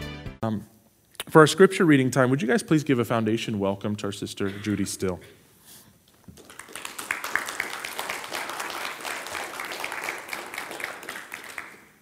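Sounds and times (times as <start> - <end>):
speech: 0.4 - 0.7, 1.3 - 5.4
audience clapping: 6.1 - 12.0.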